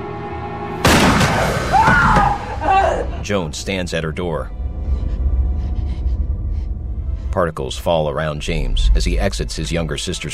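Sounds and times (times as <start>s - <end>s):
shotgun blast: 0.8s - 1.8s
low steady hum: 2.7s - 10.3s
speech: 3.2s - 4.6s, 7.4s - 10.3s.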